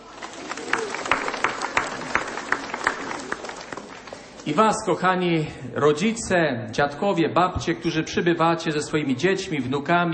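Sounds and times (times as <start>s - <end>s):
audience applause: 0.0s - 4.6s
speech: 4.5s - 10.1s.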